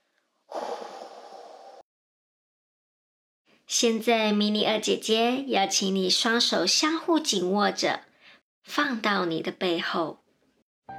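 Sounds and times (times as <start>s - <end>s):
slow exhale during a children's meditation: 0.5s - 1.8s
speech: 3.7s - 10.2s.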